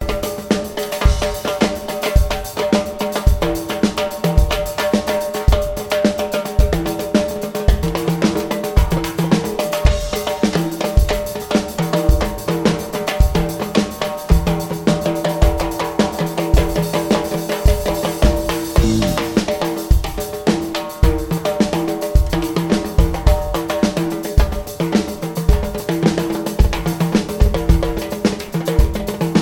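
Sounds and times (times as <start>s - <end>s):
drums: 0.0s - 29.4s.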